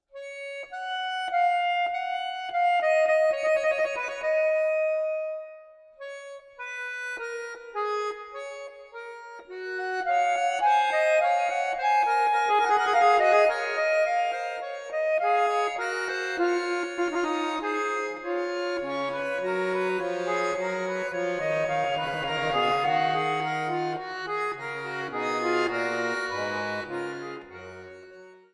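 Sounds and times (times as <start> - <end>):
fugue in F sharp major on accordion: 0.2 - 28.5.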